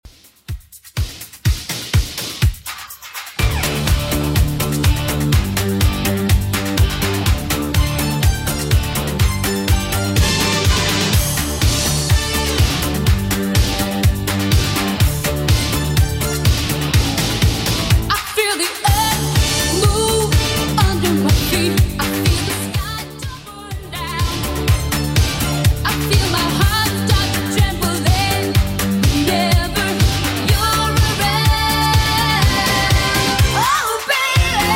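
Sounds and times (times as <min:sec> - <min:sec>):
1980s-style music at 124 BPM: 0:00.1 - 0:34.7.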